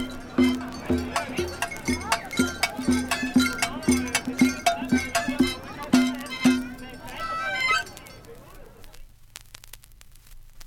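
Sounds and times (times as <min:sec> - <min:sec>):
one-man band playing: 0:00.0 - 0:08.1.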